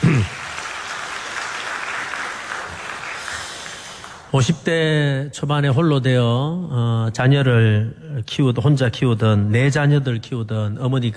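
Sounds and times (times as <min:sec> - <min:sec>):
audience applauding: 0:00.0 - 0:04.3
speech: 0:04.3 - 0:11.1.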